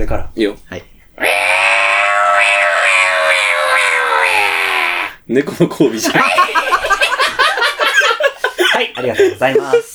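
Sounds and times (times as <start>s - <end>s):
speech: 0.0s - 1.4s, 5.3s - 7.0s, 8.8s - 9.9s
voice imitating a cicada: 1.2s - 5.2s
laughter: 5.6s - 9.9s.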